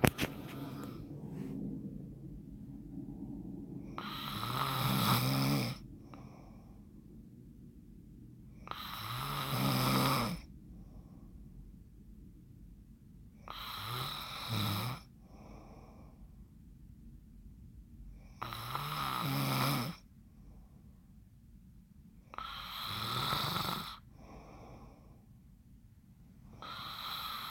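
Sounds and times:
person snoring: 0:00.1 - 0:01.1, 0:04.0 - 0:06.3, 0:08.7 - 0:10.5, 0:13.5 - 0:15.8, 0:18.4 - 0:20.0, 0:22.3 - 0:25.0, 0:26.6 - 0:27.4.

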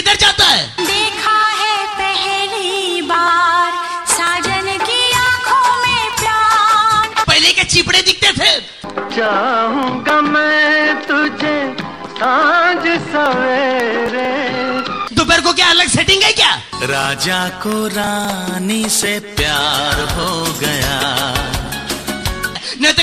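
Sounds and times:
funny remix music: 0:00.2 - 0:22.9.

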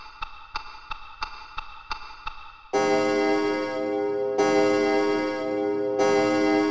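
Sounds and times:
alarm clock: 0:02.7 - 0:06.6.

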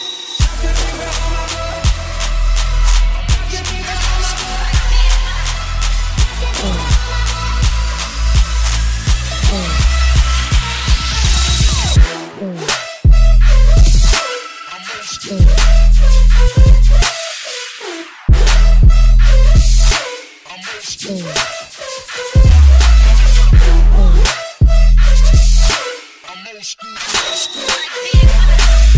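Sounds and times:
heavy bass: 0:00.4 - 0:14.2, 0:15.3 - 0:17.1, 0:18.3 - 0:20.0, 0:22.4 - 0:25.8, 0:28.2 - 0:28.9.

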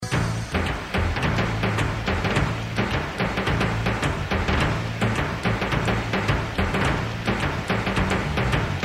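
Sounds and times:
tupan drum solo: 0:00.0 - 0:08.8.

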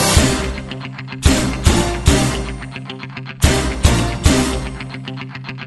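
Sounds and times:
drum beat: 0:00.2 - 0:02.6, 0:03.5 - 0:04.7.

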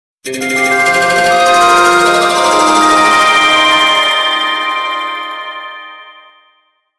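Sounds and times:
echoing chimes: 0:00.3 - 0:06.9.

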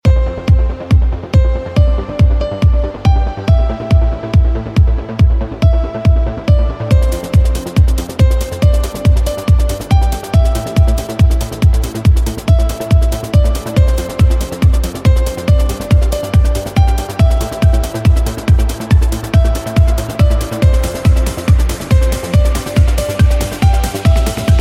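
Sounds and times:
trance remix: 0:00.0 - 0:24.5.

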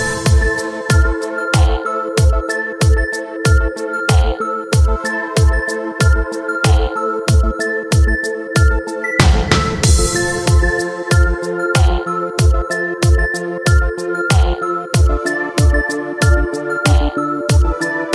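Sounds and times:
3D stylish ringtone: 0:00.0 - 0:18.1.

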